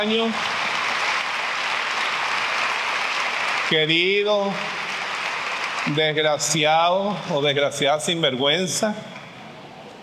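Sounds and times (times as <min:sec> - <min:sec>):
speech: 0:00.0 - 0:00.6, 0:03.7 - 0:04.8, 0:05.8 - 0:09.2
church audience applauding: 0:00.0 - 0:07.1.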